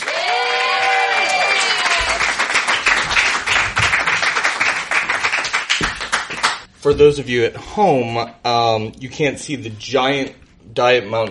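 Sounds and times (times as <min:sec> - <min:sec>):
audience applause: 0:00.0 - 0:06.7
speech: 0:06.8 - 0:11.2.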